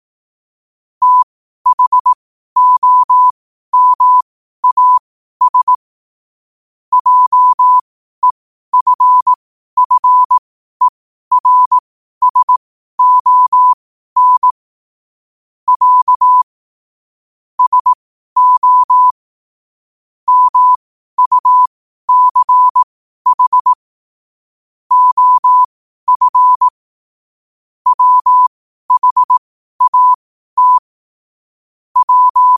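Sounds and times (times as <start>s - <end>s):
morse code at 5 wpm: 1.0s - 5.8s, 6.9s - 14.6s, 15.7s - 16.5s, 17.6s - 19.2s, 20.3s - 23.8s, 24.9s - 26.7s, 27.9s - 30.9s, 32.0s - 32.5s.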